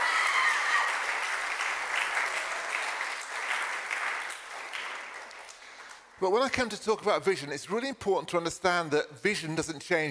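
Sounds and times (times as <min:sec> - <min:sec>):
crowd clapping: 0:00.0 - 0:06.2
speech: 0:06.2 - 0:10.0.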